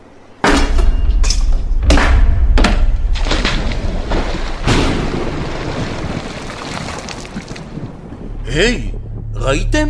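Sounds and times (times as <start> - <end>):
axe breaking through a strong door: 0.5 - 8.0
speech: 8.5 - 9.8.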